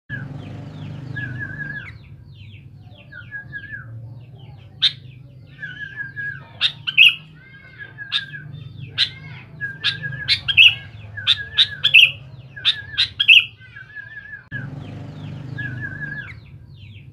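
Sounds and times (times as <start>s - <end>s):
sooty-headed bulbul calling: 0.8s - 4.0s, 4.7s - 17.0s.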